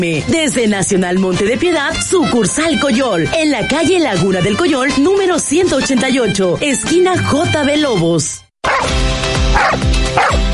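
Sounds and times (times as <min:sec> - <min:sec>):
speech: 0:00.0 - 0:08.4
dog barking: 0:08.6 - 0:08.9, 0:09.5 - 0:10.5.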